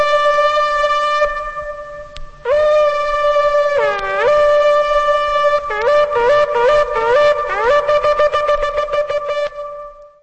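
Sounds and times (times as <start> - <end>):
shofar: 0.0 - 10.2.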